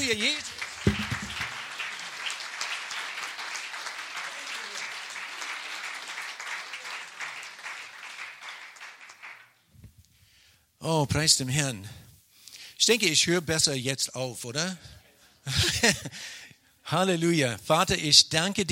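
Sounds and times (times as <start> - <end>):
audience applause: 0.0 - 9.5
speech: 0.1 - 1.0, 10.8 - 12.0, 12.8 - 18.7
laughter: 15.5 - 16.2.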